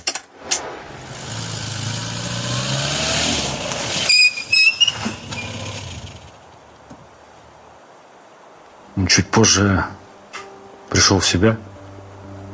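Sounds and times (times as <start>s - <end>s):
car accelerating away: 0.8s - 6.4s
speech: 9.1s - 10.0s, 10.9s - 11.7s.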